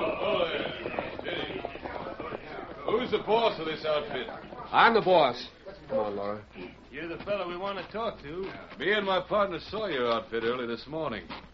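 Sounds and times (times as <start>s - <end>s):
hooves of a string of horses being led by two men toward a pass: 0.0s - 11.5s
steady hiss: 0.0s - 11.5s
speech: 3.1s - 11.4s.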